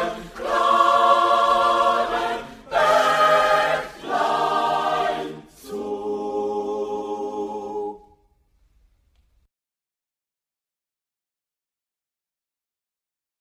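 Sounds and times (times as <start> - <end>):
choir singing: 0.0 - 8.4.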